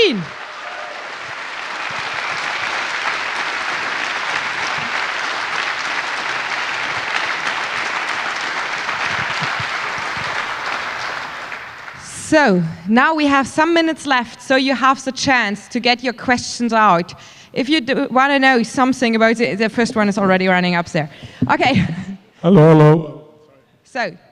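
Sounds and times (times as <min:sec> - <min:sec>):
audience applause: 0:00.0 - 0:12.2
speech: 0:12.3 - 0:23.1, 0:23.9 - 0:24.2.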